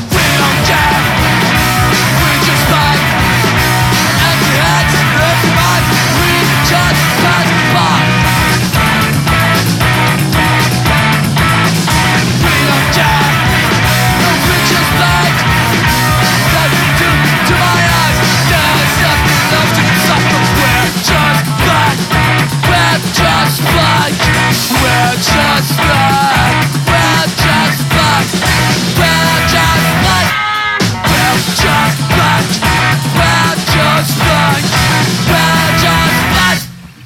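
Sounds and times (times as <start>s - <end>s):
electric guitar: 0.1s - 37.0s.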